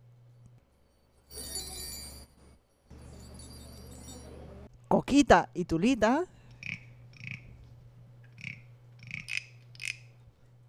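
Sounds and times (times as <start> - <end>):
tinkling of tiny bells: 1.3 - 2.4, 3.0 - 4.4
speech: 5.0 - 6.4.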